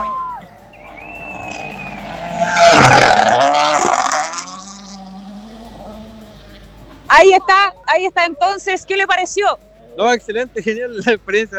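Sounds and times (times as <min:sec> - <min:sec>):
gravel noise: 0:00.0 - 0:11.5
rally car passing: 0:00.0 - 0:11.5
speech: 0:07.2 - 0:11.5.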